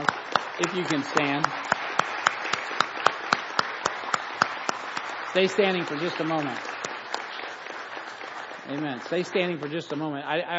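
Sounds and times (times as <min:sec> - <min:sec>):
audience applause: 0:00.0 - 0:10.2
speech: 0:00.6 - 0:01.8, 0:05.3 - 0:06.8, 0:08.7 - 0:10.5.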